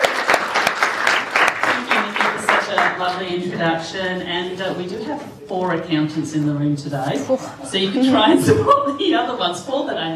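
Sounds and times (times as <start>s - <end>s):
audience applause welcoming an author: 0.0s - 3.2s
speech: 3.0s - 10.1s.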